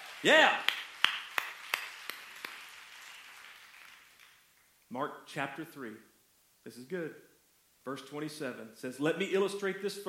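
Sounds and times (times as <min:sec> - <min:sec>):
group clapping in unison: 0:00.0 - 0:04.7
speech: 0:00.2 - 0:00.7, 0:04.9 - 0:10.0.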